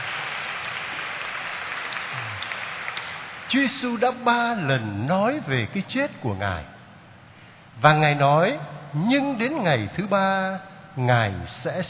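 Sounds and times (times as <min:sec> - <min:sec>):
children applauding: 0:00.0 - 0:03.3
speech: 0:03.5 - 0:06.7, 0:07.8 - 0:11.8.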